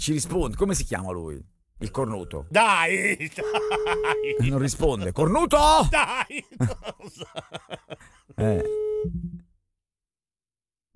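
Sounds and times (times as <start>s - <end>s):
speech: 0.0s - 9.2s
laughter: 2.6s - 8.2s
phone line tone after the caller hangs up: 3.4s - 4.6s, 8.4s - 9.2s.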